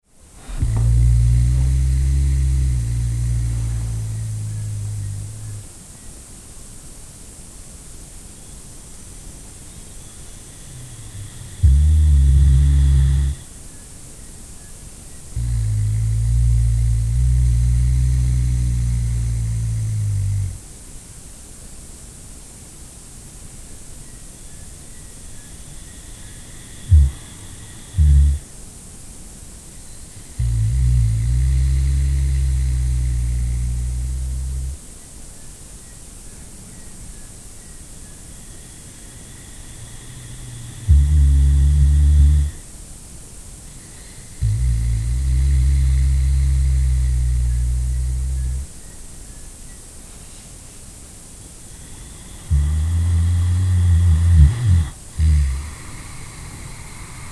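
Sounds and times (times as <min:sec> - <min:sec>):
person snoring quietly: 0:00.4 - 0:05.7, 0:09.6 - 0:13.7, 0:15.2 - 0:20.7, 0:25.0 - 0:28.6, 0:29.8 - 0:34.9, 0:38.1 - 0:42.7, 0:43.6 - 0:49.0, 0:51.5 - 0:57.3.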